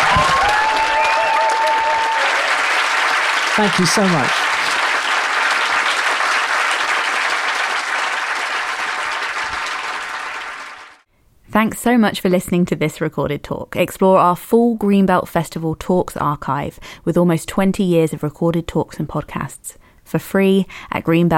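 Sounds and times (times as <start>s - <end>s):
audience applause: 0.0s - 11.1s
speech: 3.6s - 4.4s, 11.6s - 21.3s.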